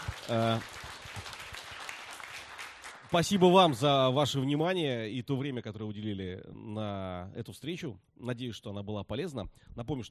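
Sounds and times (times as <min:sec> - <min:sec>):
audience applause at a business club meeting: 0:00.0 - 0:03.9
speech: 0:00.3 - 0:00.8, 0:03.1 - 0:10.0.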